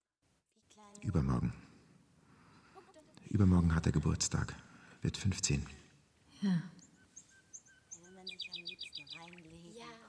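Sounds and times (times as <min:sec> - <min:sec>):
speech: 0:00.8 - 0:01.6, 0:03.3 - 0:05.8, 0:06.4 - 0:06.8
birds chirping and trilling: 0:04.7 - 0:10.0.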